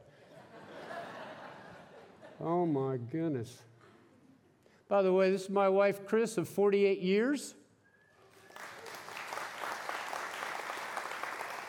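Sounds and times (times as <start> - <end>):
laughter: 0.2 - 2.7
speech: 2.4 - 3.7, 4.9 - 7.6
crowd applause: 8.3 - 11.6.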